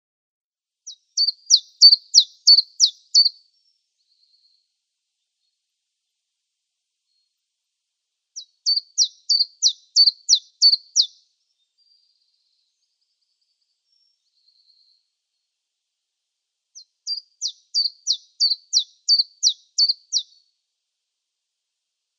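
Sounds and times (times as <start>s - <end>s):
common chiffchaff song: 0.9s - 4.6s, 8.4s - 15.0s, 16.8s - 20.4s.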